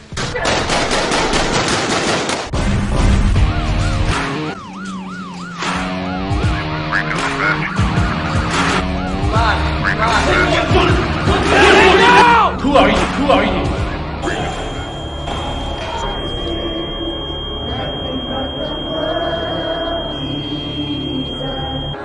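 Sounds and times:
gunfire after an order to open fire: 0:00.4 - 0:02.6
wailing siren-like tones: 0:03.3 - 0:12.4, 0:13.7 - 0:22.0
voices: 0:09.3 - 0:22.0.

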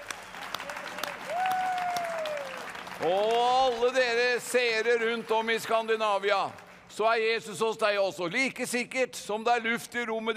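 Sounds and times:
audience clapping: 0:00.0 - 0:07.2
speech: 0:03.0 - 0:10.3.

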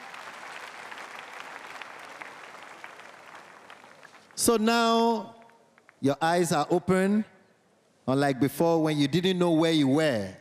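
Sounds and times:
audience clapping: 0:00.0 - 0:06.0
speech: 0:04.4 - 0:05.4, 0:06.0 - 0:07.3, 0:08.0 - 0:10.3.

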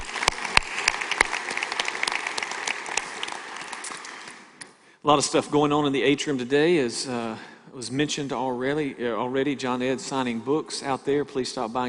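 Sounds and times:
audience applause in a room: 0:00.0 - 0:04.6
speech: 0:05.0 - 0:11.8.

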